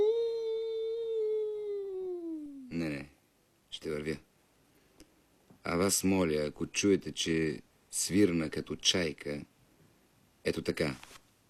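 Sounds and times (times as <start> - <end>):
long howl: 0.0 - 2.7
speech: 3.8 - 4.3, 5.6 - 9.5, 10.4 - 11.2.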